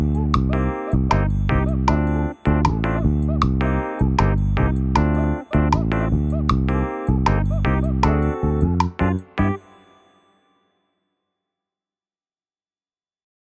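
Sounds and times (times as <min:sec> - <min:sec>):
latin partido music: 0:00.0 - 0:10.0.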